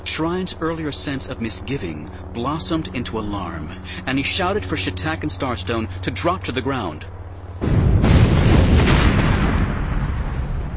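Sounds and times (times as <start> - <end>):
speech: 0.1 - 7.8
series of concussive detonations shaking the street: 7.6 - 10.7.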